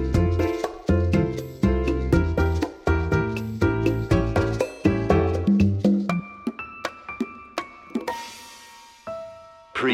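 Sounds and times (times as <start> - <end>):
tango music: 0.0 - 6.2.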